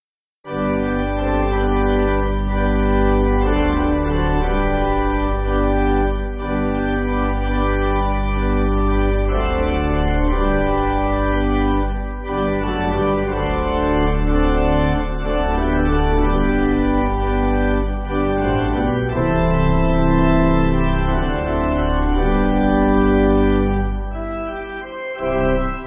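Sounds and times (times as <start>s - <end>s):
pipe organ backing music: 0.5s - 25.8s.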